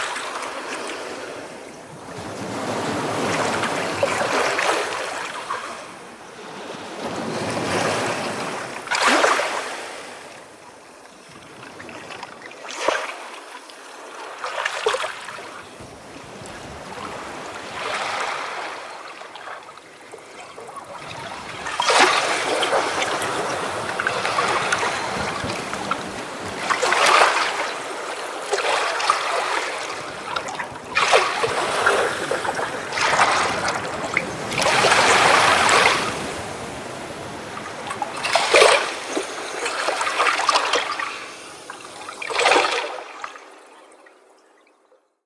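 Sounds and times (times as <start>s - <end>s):
ocean waves: 0.0s - 44.4s.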